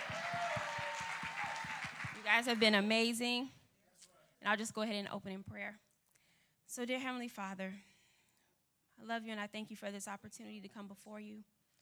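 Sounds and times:
audience clapping: 0.0 - 3.2
speech: 2.3 - 3.6, 4.4 - 5.9, 6.7 - 7.9, 9.0 - 11.5.

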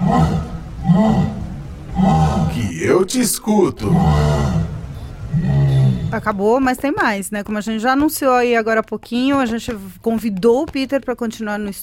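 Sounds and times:
jaguar roar: 0.0 - 3.0, 3.8 - 6.2
speech: 0.1 - 1.4, 2.8 - 4.6, 6.1 - 11.8.

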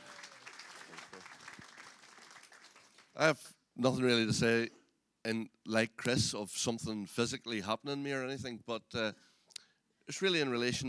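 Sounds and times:
audience applause: 0.0 - 3.1
speech: 3.2 - 9.3, 10.1 - 10.8.

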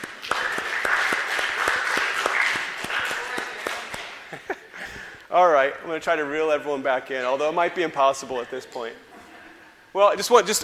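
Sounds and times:
crowd applause: 0.0 - 4.3
laughter: 2.8 - 5.1
speech: 5.3 - 9.1, 10.0 - 10.6.

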